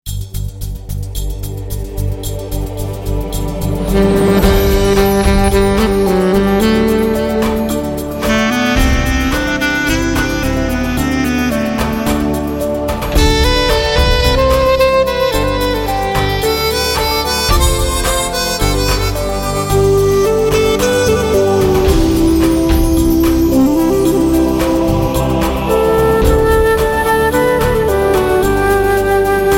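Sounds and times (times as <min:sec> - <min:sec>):
instrumental music: 0:00.1 - 0:29.5.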